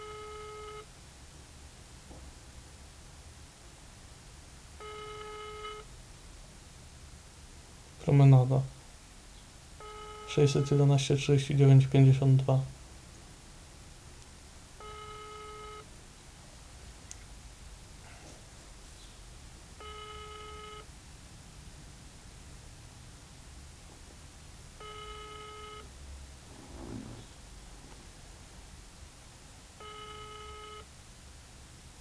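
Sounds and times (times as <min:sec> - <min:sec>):
telephone dialing tones: 0:00.0 - 0:00.9, 0:04.8 - 0:05.9, 0:09.8 - 0:10.8, 0:14.8 - 0:15.9, 0:19.8 - 0:20.9, 0:24.8 - 0:25.9, 0:29.8 - 0:30.9
low hiss: 0:00.0 - 0:31.9
speech: 0:08.0 - 0:08.8, 0:10.3 - 0:12.8.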